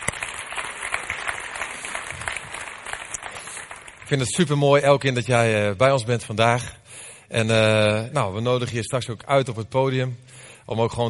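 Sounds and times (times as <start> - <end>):
audience applause: 0.0 - 4.4
speech: 4.1 - 11.0.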